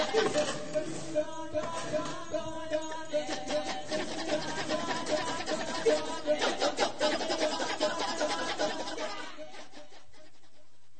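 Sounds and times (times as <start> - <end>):
kecak chanting: 0.0 - 10.0
laughter: 3.3 - 10.2.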